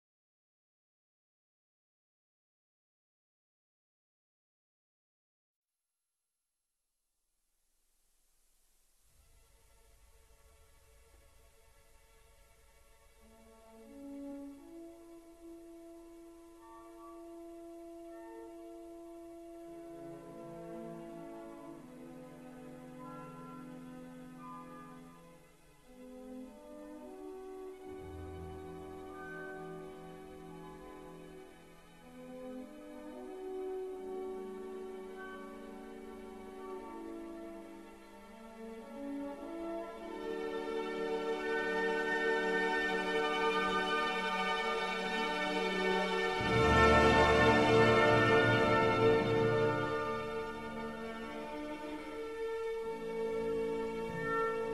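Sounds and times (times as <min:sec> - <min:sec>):
waltz music: 0:12.6 - 0:54.7.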